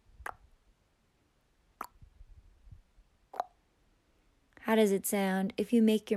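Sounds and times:
soft tongue cluck: 3.4 - 3.6
speech: 4.7 - 6.1.

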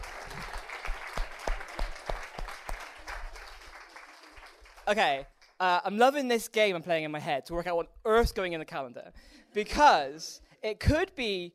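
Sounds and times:
audience applause: 0.0 - 5.2
speech: 4.9 - 11.5.

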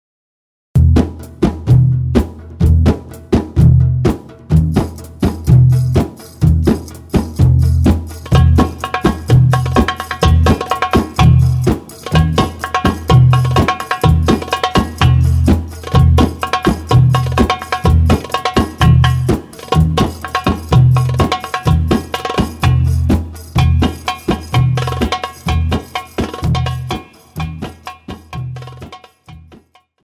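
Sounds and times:
oriental belly dance drum beat: 0.8 - 29.8.

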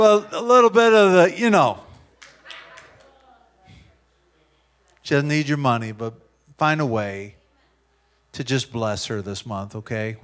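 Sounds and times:
speech: 0.0 - 1.8, 5.1 - 7.4, 8.4 - 10.2
audience clapping: 2.1 - 3.4.

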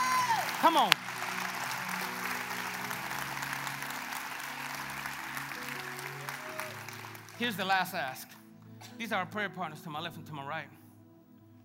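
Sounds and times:
audience clapping: 0.0 - 8.2
low sustained musical tones: 0.0 - 11.6
speech: 0.6 - 1.1, 7.4 - 8.3, 9.0 - 10.8.

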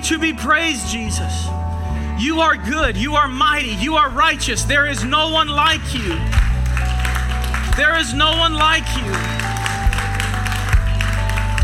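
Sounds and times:
speech: 0.0 - 6.4, 7.8 - 9.4
audience hand clapping in praise: 5.8 - 11.6.

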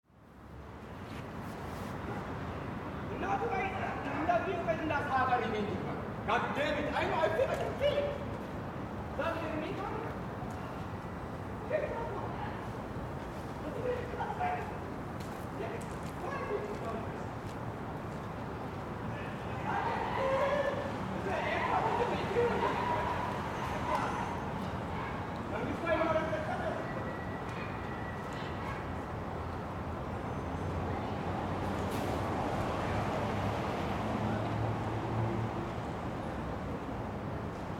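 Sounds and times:
Portland Old Town soundscape: 0.0 - 37.7.

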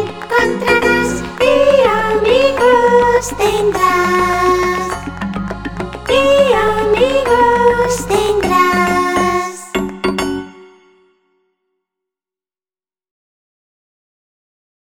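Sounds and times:
rumba music: 0.0 - 11.1.

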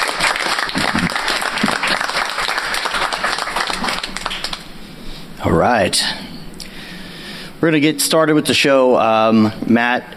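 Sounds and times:
audience round of applause: 0.0 - 4.7
speech: 5.4 - 6.2, 7.6 - 10.1.

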